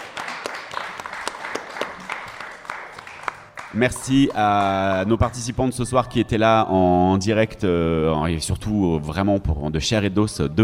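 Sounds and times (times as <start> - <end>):
audience applause: 0.0 - 5.5
speech: 3.7 - 10.6.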